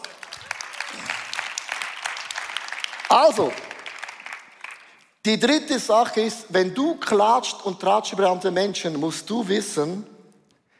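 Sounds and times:
audience applause: 0:00.0 - 0:05.0
speech: 0:03.1 - 0:03.7, 0:05.2 - 0:10.1.

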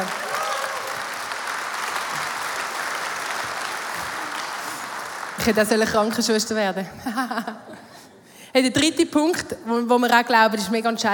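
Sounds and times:
audience applause: 0:00.0 - 0:06.2
speech: 0:05.4 - 0:11.1
laughter: 0:06.9 - 0:07.9.

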